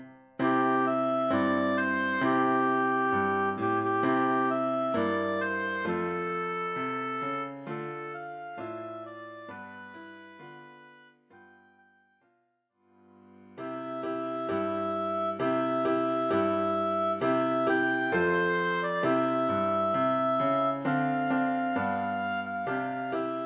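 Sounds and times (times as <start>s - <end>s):
oboe: 0.4s - 11.8s, 13.6s - 23.4s.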